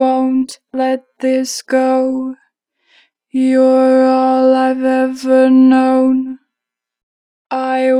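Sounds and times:
person singing: 0:00.0 - 0:02.4, 0:03.4 - 0:06.4, 0:07.5 - 0:07.9.

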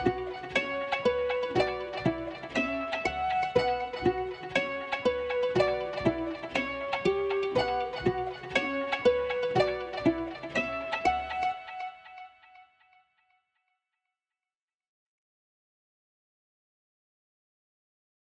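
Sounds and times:
trap guitar melody loop in B minor at 120 BPM: 0:00.0 - 0:12.5.

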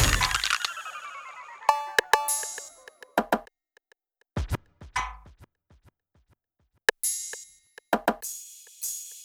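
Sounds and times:
sound effects: 0:01.7 - 0:02.9
percussion in D minor: 0:01.7 - 0:06.3, 0:06.9 - 0:09.2.

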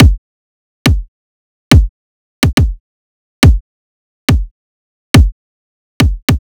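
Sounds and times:
riddim kick drum loop: 0:00.0 - 0:00.2, 0:00.8 - 0:01.1, 0:01.7 - 0:02.8, 0:03.4 - 0:03.6, 0:04.3 - 0:04.5, 0:05.2 - 0:05.4, 0:06.0 - 0:06.4.

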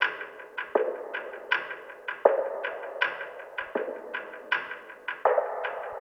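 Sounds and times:
percussion: 0:00.0 - 0:06.0.

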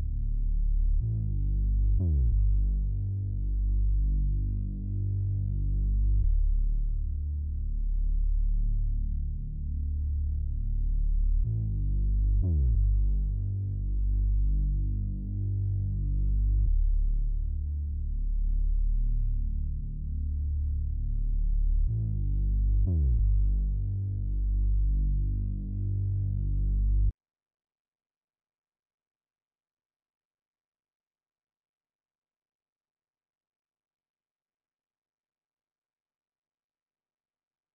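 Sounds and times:
bass melody in D minor: 0:00.0 - 0:27.1.

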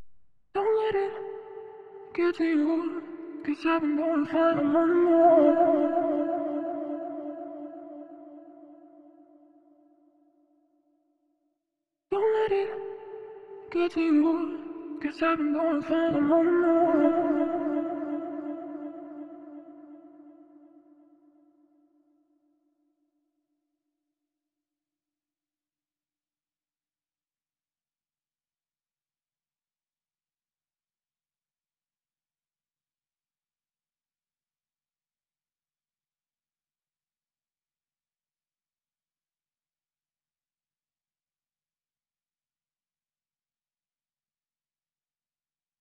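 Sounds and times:
RnB vocals in A minor: 0:00.6 - 0:08.4, 0:12.1 - 0:20.4.

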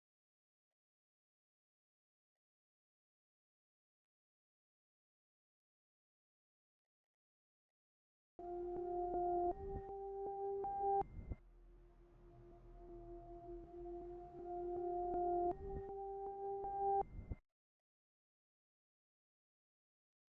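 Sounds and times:
RnB lead loop in G minor: 0:08.4 - 0:11.0, 0:11.9 - 0:17.0.

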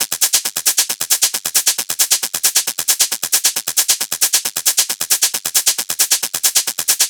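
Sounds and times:
techno hi-hat loop at 135 BPM: 0:00.0 - 0:07.0.

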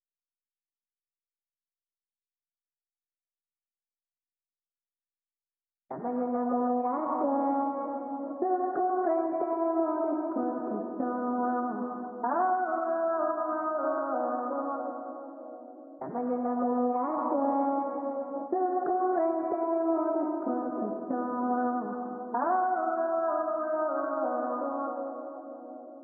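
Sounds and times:
Latin vocal melody in B minor: 0:05.9 - 0:26.0.

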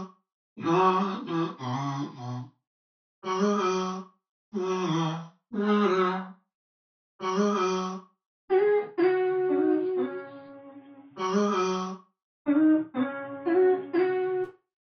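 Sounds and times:
vocal loop in C sharp minor: 0:00.6 - 0:02.4, 0:04.6 - 0:06.3, 0:07.2 - 0:07.9, 0:08.5 - 0:11.9, 0:12.5 - 0:14.5.

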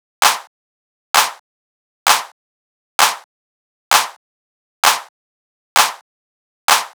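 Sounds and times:
techno clap loop at 130: 0:00.2 - 0:00.5, 0:01.2 - 0:01.4, 0:02.1 - 0:02.4, 0:03.0 - 0:03.3, 0:03.9 - 0:04.2, 0:04.8 - 0:05.1, 0:05.8 - 0:06.0, 0:06.7 - 0:06.9.

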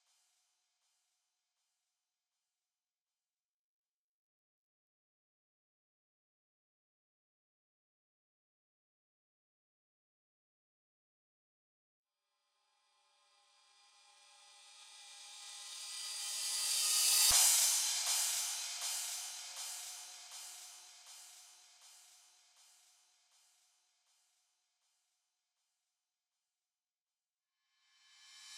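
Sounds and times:
drums: 0:14.4 - 0:22.9.

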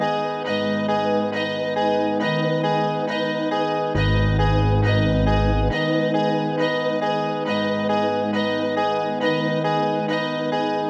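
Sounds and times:
137 BPM music in G sharp minor: 0:00.0 - 0:10.8.

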